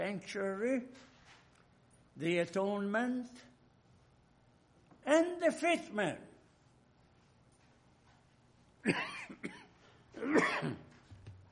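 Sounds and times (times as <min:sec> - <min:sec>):
speech: 0:00.0 - 0:01.1, 0:02.2 - 0:03.5, 0:05.0 - 0:06.3, 0:08.8 - 0:09.6, 0:10.2 - 0:10.8
man coughing after a cold drink: 0:08.8 - 0:11.0.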